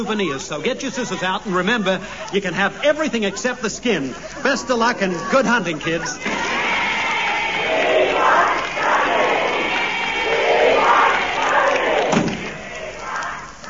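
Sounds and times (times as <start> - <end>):
speech: 0.0 - 6.6
laughter: 0.0 - 13.5
excited crowd of girls shouting and screaming outside: 6.2 - 13.6.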